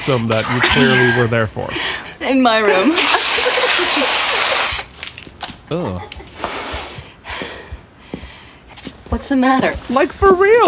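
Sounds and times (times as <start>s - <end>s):
speech: 0.0s - 3.3s, 5.7s - 6.2s, 9.1s - 10.6s
whipped cream can spraying: 2.9s - 4.9s.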